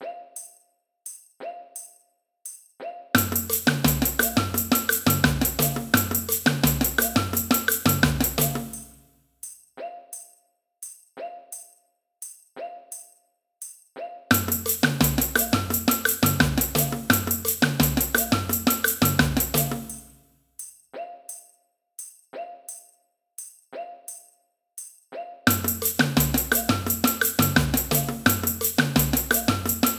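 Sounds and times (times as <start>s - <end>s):
samba band playing: 3.2s - 8.9s, 14.3s - 20.1s, 25.5s - 29.9s
cuica in a samba band: 3.2s - 9.0s, 14.3s - 20.2s, 25.5s - 29.9s.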